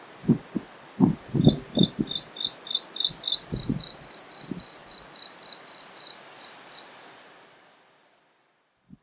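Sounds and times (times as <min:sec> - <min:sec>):
bluethroat singing: 0:00.2 - 0:06.8.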